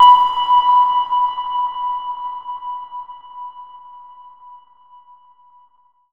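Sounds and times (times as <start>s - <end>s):
sonar ping with reverb: 0.0s - 0.6s.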